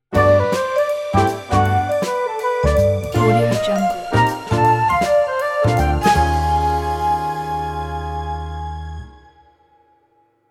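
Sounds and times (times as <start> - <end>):
jazzy sitcom stinger transition: 0.1 - 9.4.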